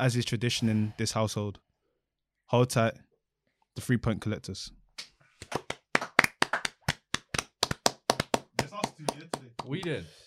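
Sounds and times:
speech: 0.0 - 1.7, 2.5 - 3.1, 3.8 - 4.8, 9.7 - 10.2
crowd clapping hands: 5.0 - 10.0.

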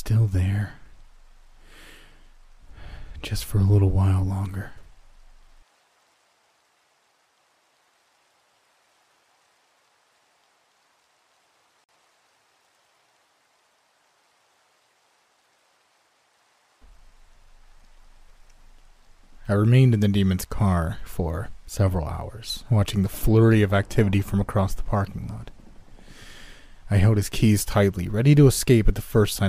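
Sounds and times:
rain falling: 0.0 - 29.4
speech: 0.1 - 0.8, 3.2 - 4.8, 19.5 - 25.6, 26.9 - 29.4.

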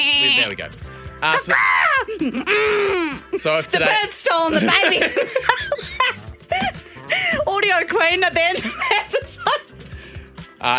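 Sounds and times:
lamb bleating: 0.0 - 0.5
speech: 0.3 - 6.1, 7.6 - 9.7, 10.6 - 10.7
laughter: 4.4 - 7.4, 8.5 - 9.6.

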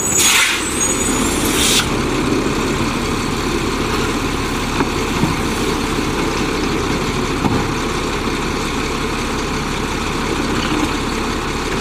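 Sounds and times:
garbage truck engine rumbling: 0.0 - 11.7
bright hiss like air brakes releasing: 0.1 - 1.9.

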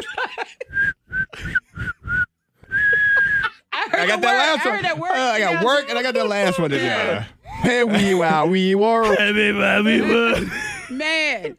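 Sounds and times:
laughter: 0.0 - 0.8, 2.8 - 11.5
person whistling a tune: 0.7 - 3.6
speech: 4.0 - 11.5.

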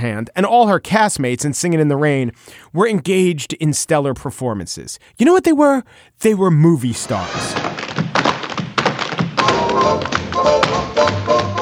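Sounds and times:
speech: 0.0 - 7.8
tap dancing footwork: 7.0 - 11.5.

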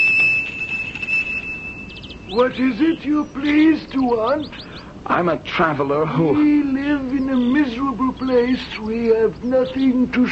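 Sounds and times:
monastery gate bell ringing: 0.0 - 3.2
low rumbling background: 0.0 - 10.2
speech: 2.3 - 10.2.

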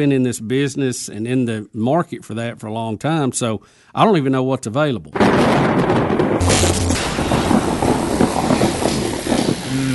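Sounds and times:
speech: 0.0 - 7.0
lightning strike thunder sound effect: 5.2 - 9.9.

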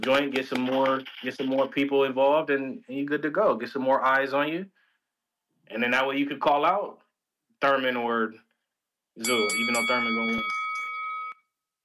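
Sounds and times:
speech: 0.0 - 4.8, 5.7 - 7.0, 7.6 - 8.4, 9.2 - 10.6
boxing ring bell: 9.2 - 11.6.

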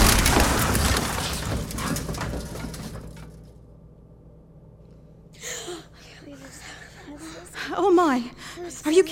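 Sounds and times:
car crashing into a tree: 0.0 - 3.2
speech: 7.8 - 9.1.

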